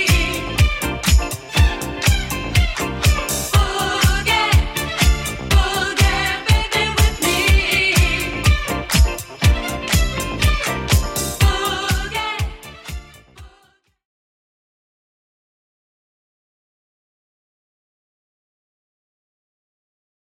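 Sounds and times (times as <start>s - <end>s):
70s Redrum drum beat: 0.0s - 13.2s.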